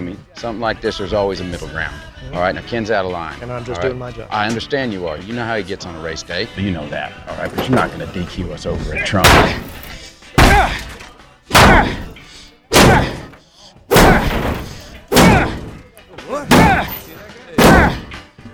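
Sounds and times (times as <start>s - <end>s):
speech: 0.2s - 9.8s
hammering on a truck: 9.2s - 9.7s, 10.4s - 10.8s, 11.6s - 12.1s, 12.7s - 13.3s, 13.9s - 15.8s, 16.4s - 17.0s, 17.6s - 18.2s.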